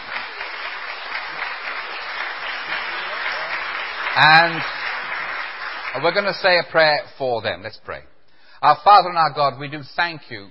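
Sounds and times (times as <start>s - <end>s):
audience applause: 0.0s - 6.4s
speech: 4.2s - 4.8s, 6.0s - 10.4s.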